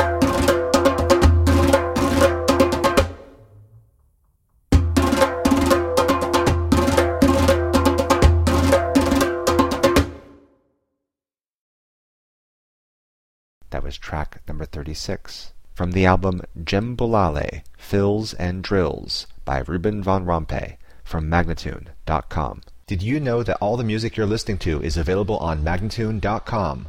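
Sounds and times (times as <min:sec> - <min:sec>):
djembe drumming: 0:00.0 - 0:03.3, 0:04.7 - 0:10.3
person speaking: 0:13.6 - 0:26.8.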